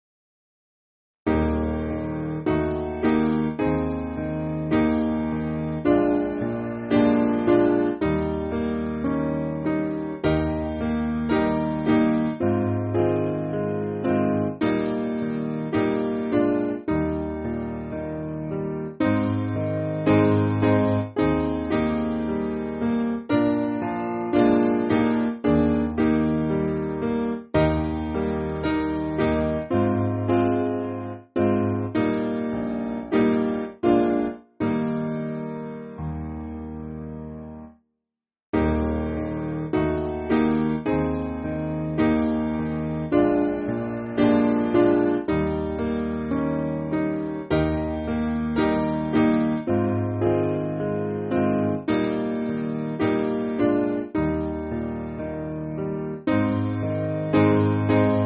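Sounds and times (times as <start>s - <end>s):
piano backing music for churches: 1.3s - 37.8s, 38.6s - 58.2s.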